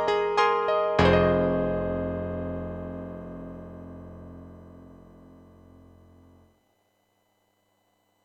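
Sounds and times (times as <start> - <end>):
electric grand piano: 0.0 - 6.4.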